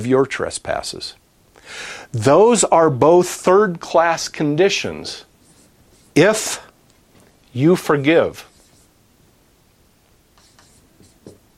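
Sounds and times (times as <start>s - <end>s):
speech: 0.0s - 5.3s, 6.2s - 6.7s, 7.6s - 8.5s
handwriting pen strokes: 5.4s - 6.4s, 8.4s - 8.9s, 10.4s - 11.5s.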